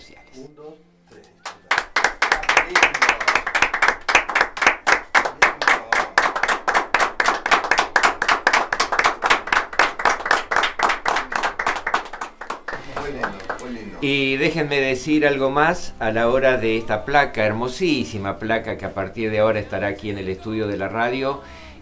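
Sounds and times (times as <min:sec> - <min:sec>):
speech: 0:00.4 - 0:01.2, 0:14.0 - 0:21.6
studio audience clapping in unison: 0:01.4 - 0:14.2.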